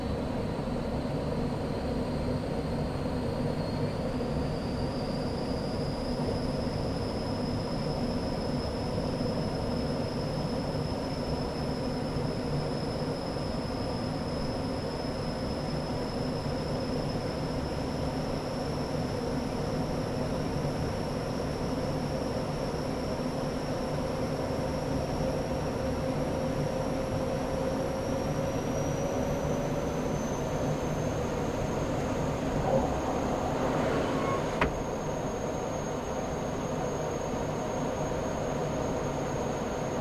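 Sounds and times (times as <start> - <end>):
Gloster Meteor F Mk8 fighter jet flying, heard from the interior: 0.0 - 39.9.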